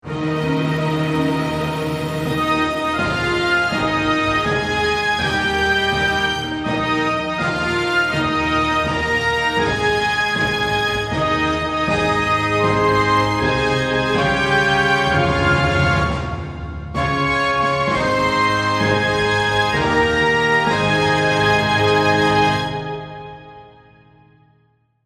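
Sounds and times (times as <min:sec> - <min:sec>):
orchestra playing a birthday song: 0:00.0 - 0:23.7.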